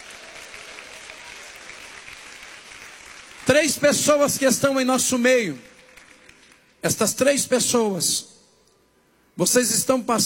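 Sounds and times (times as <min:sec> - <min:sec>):
audience clapping hands: 0:00.0 - 0:07.4
speech: 0:03.5 - 0:05.7, 0:06.8 - 0:08.3, 0:09.4 - 0:10.2.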